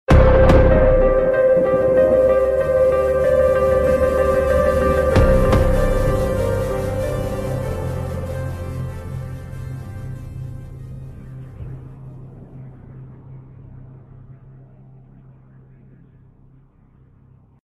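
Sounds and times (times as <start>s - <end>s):
music ending: 0.1s - 14.0s.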